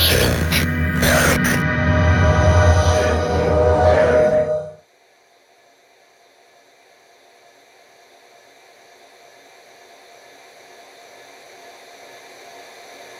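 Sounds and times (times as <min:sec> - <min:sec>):
synth: 0:00.0 - 0:04.8.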